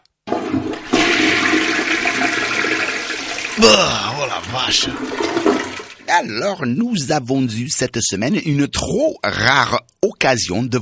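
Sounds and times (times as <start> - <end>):
toilet flushing: 0.2 - 6.2
speech: 3.6 - 10.7.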